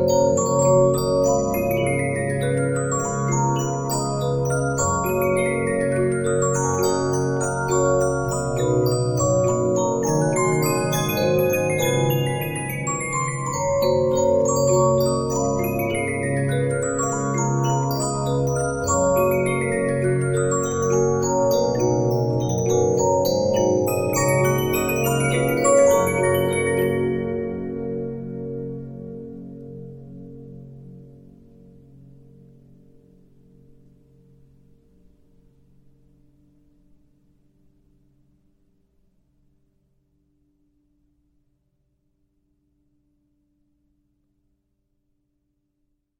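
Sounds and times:
Regina 15-inch disc music box: 0.0s - 27.8s.

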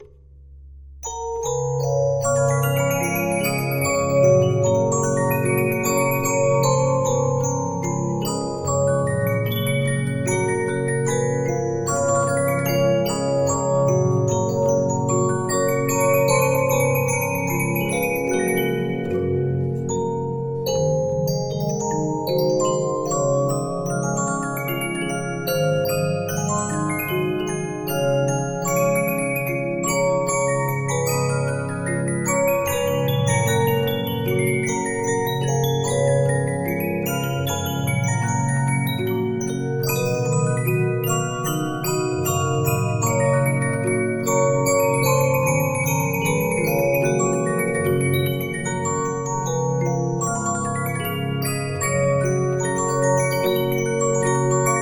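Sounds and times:
Regina 15-inch disc music box: 1.0s - 54.8s.

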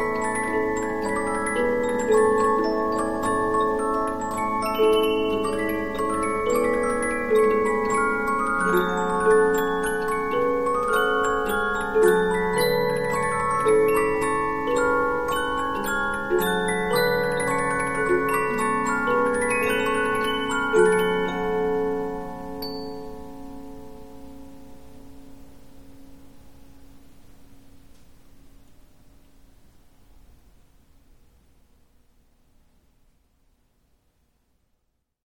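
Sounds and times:
Polyphon 15-inch disc music box playing: 0.0s - 23.8s.

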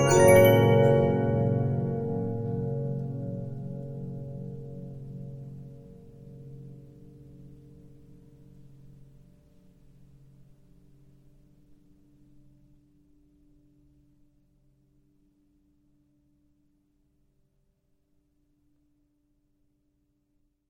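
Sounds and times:
Regina 15-inch disc music box: 0.0s - 2.6s.

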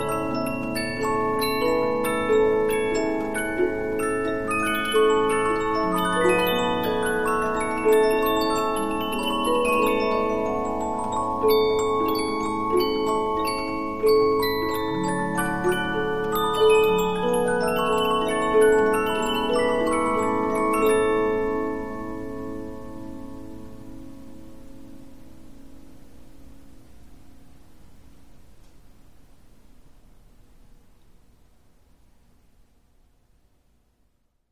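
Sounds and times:
15-inch Polyphon music box playing: 0.0s - 24.4s.

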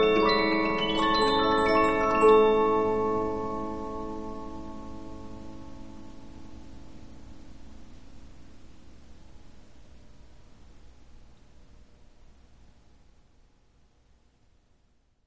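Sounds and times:
Polyphon 15-inch disc music box playing: 0.0s - 4.3s.

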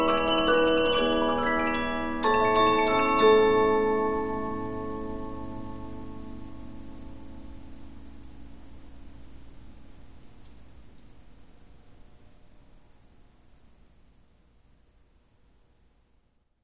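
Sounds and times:
Polyphon 15-inch disc music box playing: 0.0s - 5.6s.

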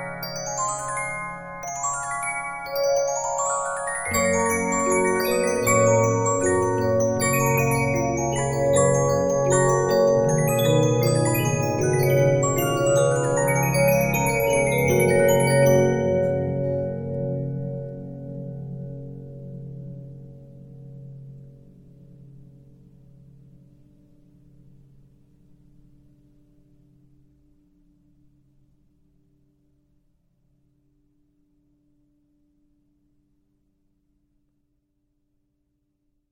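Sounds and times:
Regina 15-inch disc music box: 0.0s - 18.0s.

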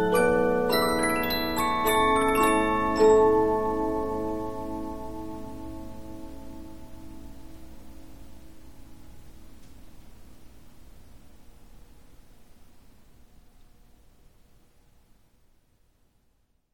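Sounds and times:
Polyphon 15-inch disc music box playing: 0.0s - 5.2s.

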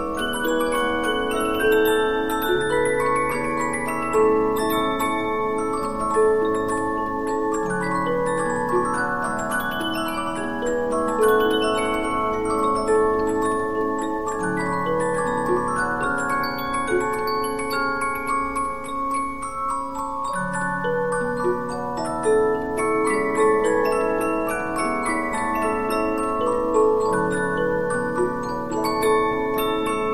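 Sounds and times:
15-inch Polyphon music box playing: 0.0s - 30.1s.

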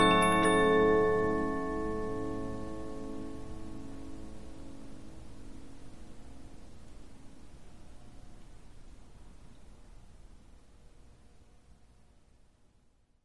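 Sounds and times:
Polyphon 15-inch disc music box playing: 0.0s - 4.0s.

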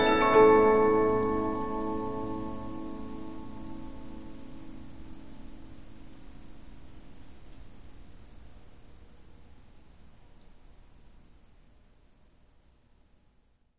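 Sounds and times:
Polyphon 15-inch disc music box playing: 0.0s - 4.1s.

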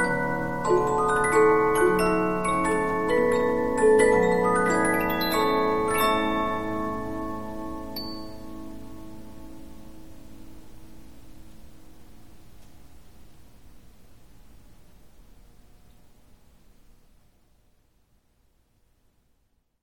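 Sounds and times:
Polyphon 15-inch disc music box playing: 0.0s - 8.7s.

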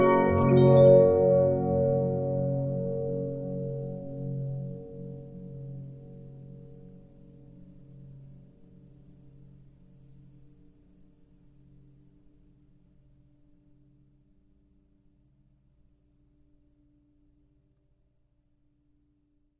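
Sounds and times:
Regina 15-inch disc music box: 0.0s - 3.2s.

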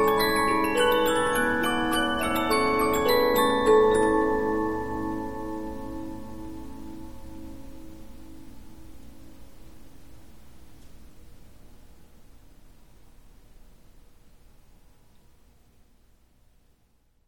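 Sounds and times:
Polyphon 15-inch disc music box playing: 0.0s - 6.8s.

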